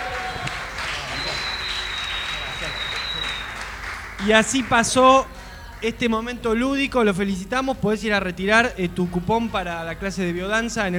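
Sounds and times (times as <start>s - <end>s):
applause: 0.0s - 5.9s
speech: 4.2s - 10.9s.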